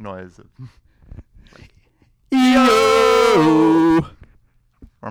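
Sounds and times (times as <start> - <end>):
cartoon music stabs sting: 2.4 - 4.0.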